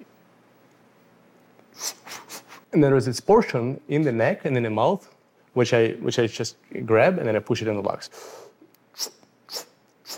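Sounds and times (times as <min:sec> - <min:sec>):
freediver's sharp intake of breath during lung gymnastics breathing: 0:01.7 - 0:02.7, 0:08.1 - 0:10.1
speech: 0:02.7 - 0:09.2.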